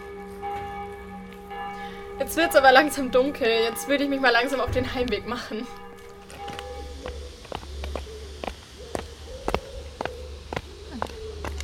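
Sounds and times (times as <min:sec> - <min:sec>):
faint continuous tone: 0:00.1 - 0:08.8
footsteps walking through narrow alleys of Eichstätt: 0:00.1 - 0:11.6
speech: 0:02.2 - 0:05.8.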